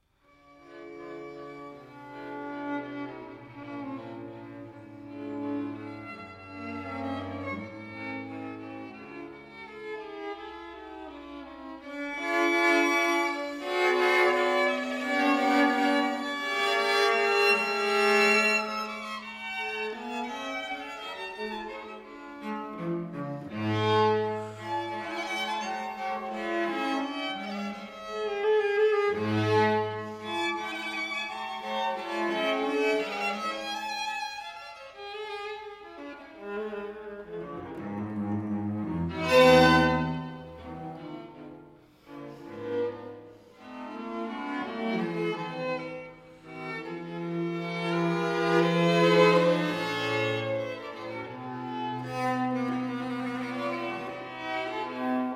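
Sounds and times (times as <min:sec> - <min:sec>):
string quartet playing: 0:00.0 - 0:55.3.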